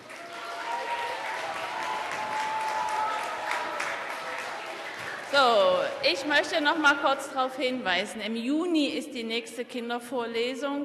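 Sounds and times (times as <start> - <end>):
audience applause: 0.0 - 6.5
speech: 5.3 - 10.8.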